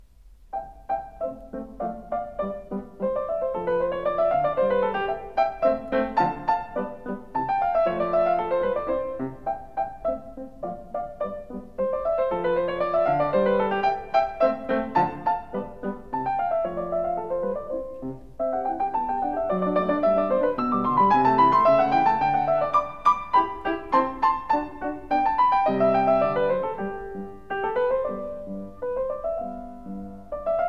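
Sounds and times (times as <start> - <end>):
piano sonata in C major rondo: 0.0 - 30.6.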